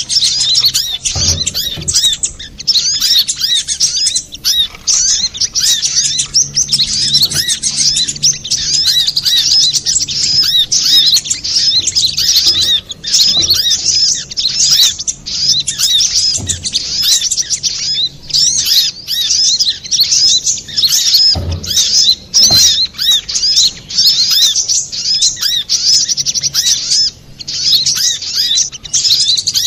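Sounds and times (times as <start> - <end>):
speech: 0.0 - 0.8
little spiderhunter singing: 0.0 - 29.6
low thump: 0.7 - 2.7, 16.2 - 17.5, 21.3 - 23.8.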